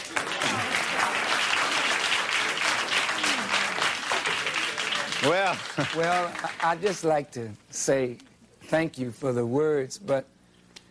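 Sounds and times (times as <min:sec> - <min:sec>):
audience applause: 0:00.0 - 0:07.2
laughter: 0:05.2 - 0:07.1
speech: 0:05.2 - 0:10.4.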